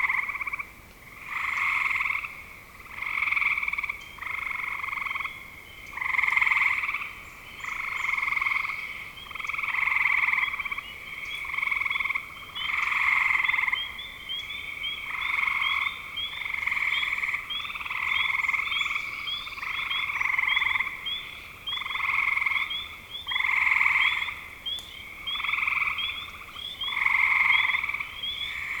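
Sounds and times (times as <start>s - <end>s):
frogs giving rattling trills: 0.0s - 28.7s.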